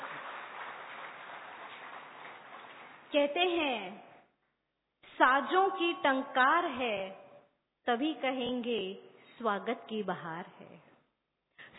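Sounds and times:
audience applause filling a hall: 0.0s - 3.1s
speech: 3.1s - 4.1s, 5.2s - 7.2s, 7.9s - 10.9s.

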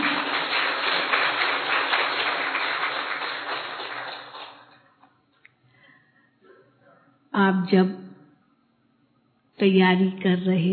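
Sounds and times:
crowd applauding: 0.0s - 4.9s
speech: 7.4s - 8.0s, 9.6s - 10.7s.

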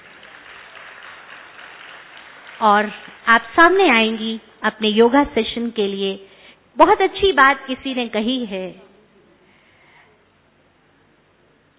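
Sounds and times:
faint audience applause welcoming a doctor before a yoga session: 0.0s - 4.3s
speech: 2.6s - 8.9s.

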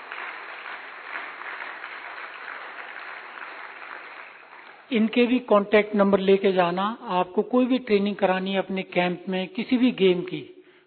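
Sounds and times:
audience clapping: 0.0s - 5.2s
speech: 4.9s - 10.5s.

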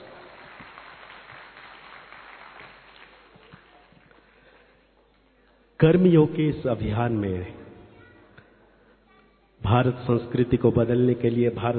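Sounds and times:
loud applause: 0.0s - 4.7s
speech: 5.8s - 7.6s, 9.7s - 11.7s.

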